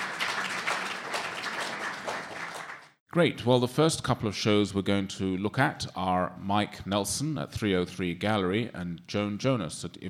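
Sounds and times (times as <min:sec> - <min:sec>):
audience applause welcoming panelists at an art review panel: 0:00.0 - 0:03.0
speech: 0:03.1 - 0:10.0.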